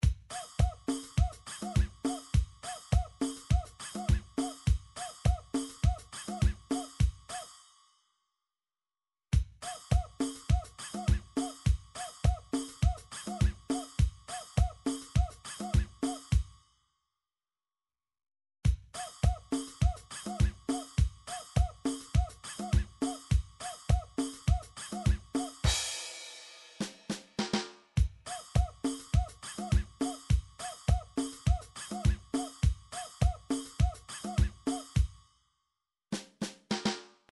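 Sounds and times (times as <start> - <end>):
Latin rap drum beat: 0.0 - 7.4, 9.4 - 16.5, 18.7 - 35.2, 36.2 - 37.1.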